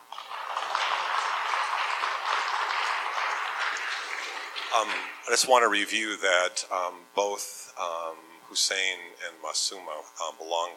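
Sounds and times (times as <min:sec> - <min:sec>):
audience applause: 0:00.0 - 0:05.3
speech: 0:04.7 - 0:10.7.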